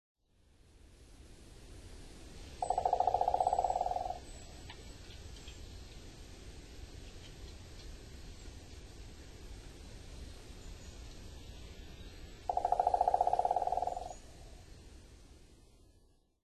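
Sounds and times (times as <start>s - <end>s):
steady background hiss: 0.2s - 16.4s
Owston's woodpecker drumming: 2.6s - 5.6s, 12.5s - 14.2s.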